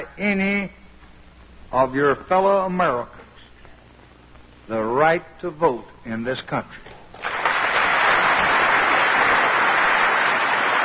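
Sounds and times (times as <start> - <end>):
speech: 0.2 - 0.8, 1.7 - 3.2, 4.7 - 7.0
audience applause after Lyndon Baines Johnson speech: 7.2 - 10.8.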